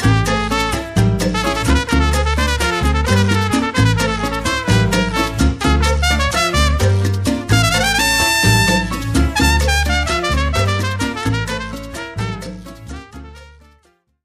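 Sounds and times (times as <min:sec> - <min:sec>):
Latin jazz music: 0:00.0 - 0:14.2.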